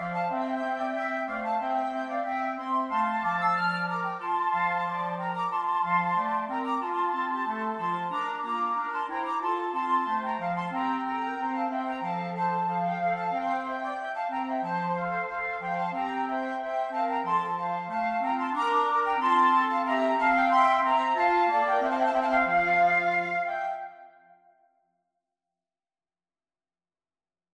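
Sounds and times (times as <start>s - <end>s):
flute quartet playing: 0.0s - 24.4s.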